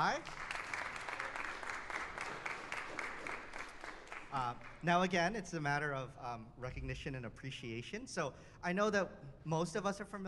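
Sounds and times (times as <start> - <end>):
speech: 0.0 - 0.4, 4.3 - 10.2
audience applause: 0.0 - 4.8.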